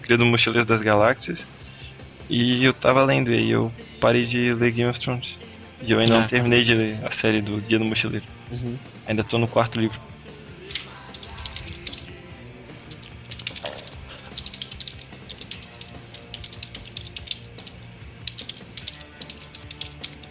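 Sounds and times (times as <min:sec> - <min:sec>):
speech: 0:00.1 - 0:01.6, 0:02.3 - 0:10.1
hard rapid typing on a computer keyboard: 0:13.0 - 0:20.2.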